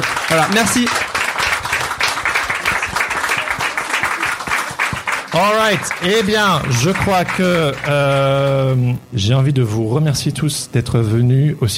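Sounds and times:
audience applause: 0.0 - 8.9
speech: 0.3 - 1.0, 5.3 - 11.7.

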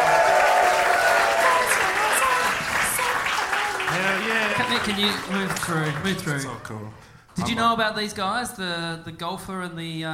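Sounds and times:
audience applause and cheering welcoming a comedian at a comedy show: 0.0 - 6.9
speech: 4.8 - 10.1.

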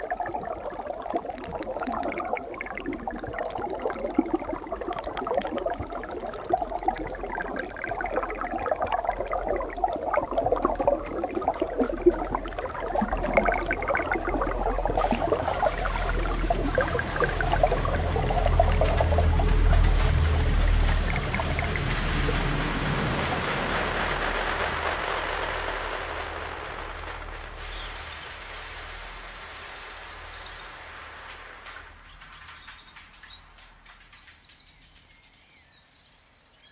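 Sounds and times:
rainfall: 0.0 - 35.6.

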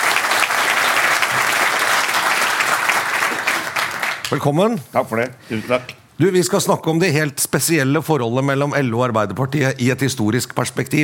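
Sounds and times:
audience clapping: 0.0 - 4.6
speech: 4.3 - 11.0.

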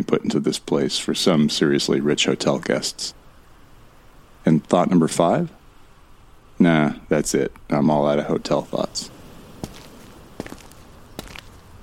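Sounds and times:
speech: 0.0 - 3.2, 4.4 - 5.6, 6.6 - 9.2
footsteps crunching on dust and grit in a ballroom: 9.0 - 11.7.

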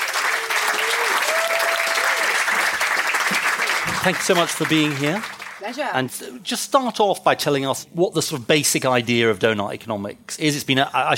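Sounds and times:
audience applause welcoming a guest author at a live discussion event: 0.0 - 5.9
speech: 4.0 - 11.1.

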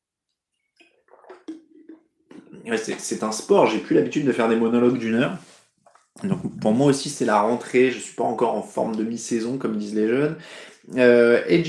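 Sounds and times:
person taking a small sip of water: 0.8 - 2.7, 5.8 - 6.8
speech: 2.6 - 5.5, 6.2 - 11.6.

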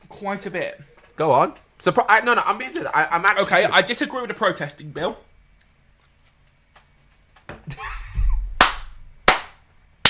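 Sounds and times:
speech: 0.2 - 5.3
hand clapping: 8.6 - 10.0.

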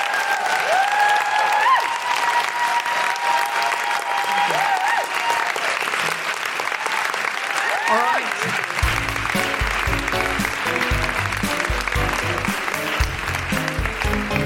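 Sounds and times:
whoops and cheers: 0.0 - 5.9, 6.8 - 8.8
audience applause: 0.0 - 14.4.

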